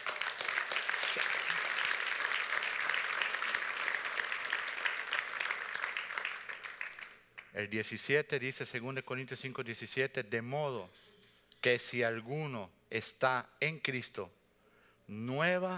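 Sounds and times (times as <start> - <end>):
audience applause: 0.0 - 7.2
speech: 1.2 - 1.4, 7.6 - 11.0, 11.6 - 14.4, 15.1 - 15.7.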